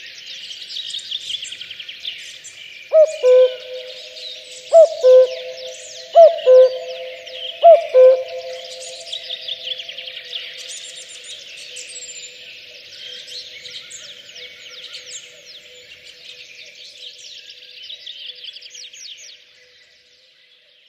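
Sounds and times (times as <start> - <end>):
songbirds chirping: 0.0 - 20.8
common cuckoo calling cu-coo: 2.9 - 10.1.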